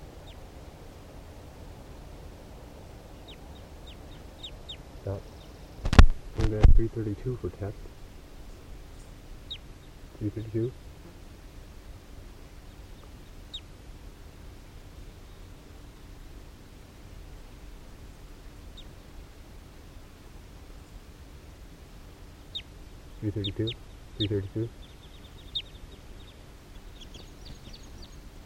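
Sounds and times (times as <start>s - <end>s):
wild birds chirping: 0.0s - 1.0s, 1.6s - 21.2s, 21.8s - 28.4s
hiss: 0.0s - 28.4s
raspy bird calls: 3.1s - 5.9s, 8.4s - 10.7s, 12.6s - 13.7s, 22.4s - 28.4s
speech: 5.0s - 5.3s, 6.5s - 7.9s, 10.2s - 10.8s, 23.3s - 24.9s.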